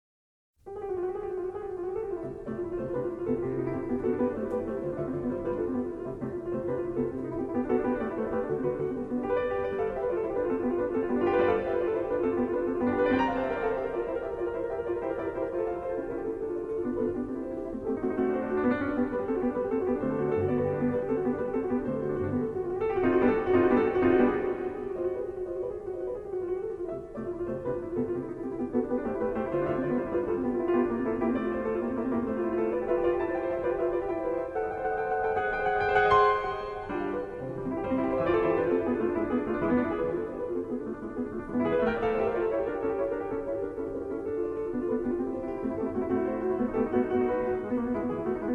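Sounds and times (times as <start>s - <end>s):
piano piece in C major: 0.6s - 48.5s.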